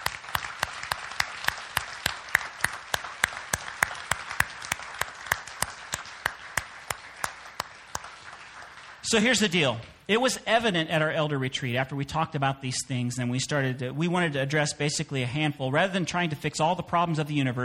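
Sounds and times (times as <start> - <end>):
audience applause: 0.0 - 9.6
steady evenly spaced clapping beat: 0.0 - 10.1
speech: 9.1 - 17.6.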